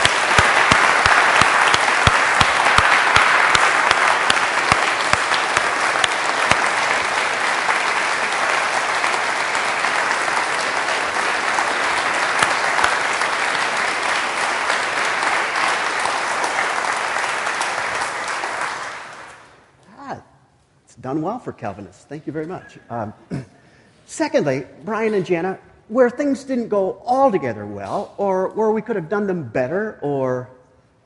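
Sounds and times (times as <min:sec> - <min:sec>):
audience applause: 0:00.0 - 0:19.6
speech: 0:21.1 - 0:23.4, 0:24.2 - 0:31.0.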